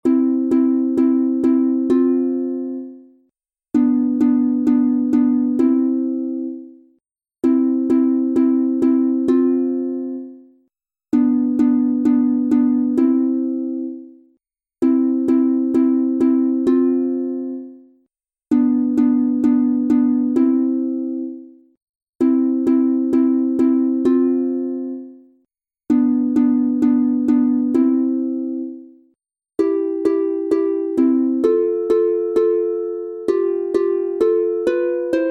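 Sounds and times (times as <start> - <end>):
two-part harp piece in C major: 0.0 - 17.9, 18.5 - 21.6, 22.2 - 25.3, 25.9 - 29.0, 29.6 - 35.3.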